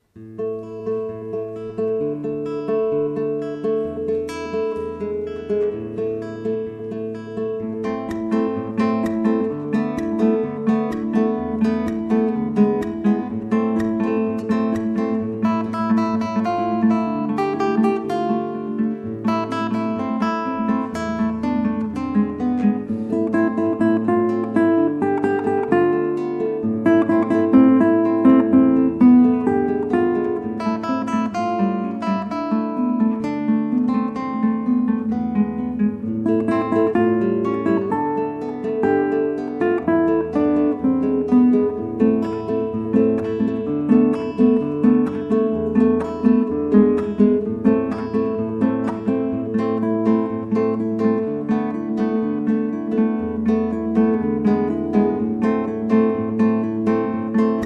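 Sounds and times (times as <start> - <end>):
live toada song: 0.0 - 57.6.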